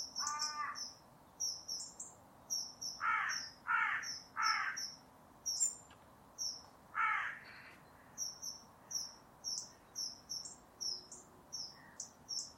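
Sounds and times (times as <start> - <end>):
bird uttering drawn-out raspy caws: 0.2 - 0.9, 3.0 - 5.0, 7.0 - 8.3.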